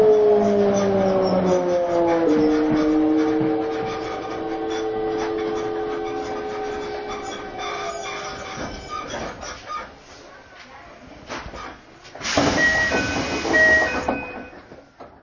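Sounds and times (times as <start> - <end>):
Toei Asakusa Line 5300 series electric train running: 0.0 - 9.0, 12.2 - 14.6.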